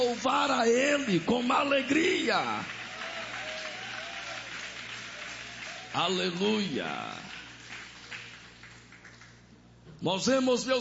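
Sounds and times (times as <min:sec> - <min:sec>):
speech: 0:00.0 - 0:02.8, 0:06.0 - 0:07.3, 0:10.0 - 0:10.8
audience applauding: 0:00.9 - 0:09.5.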